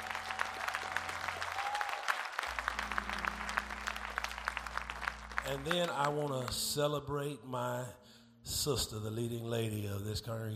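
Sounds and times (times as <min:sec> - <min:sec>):
audience applause: 0:00.0 - 0:06.6
speech: 0:05.5 - 0:10.5.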